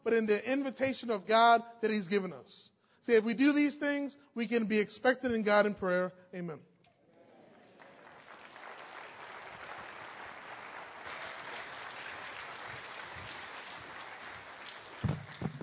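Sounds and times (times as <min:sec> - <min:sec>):
speech: 0:00.1 - 0:06.7
audience applause: 0:07.5 - 0:15.6
louder claps or thumps: 0:12.6 - 0:15.6.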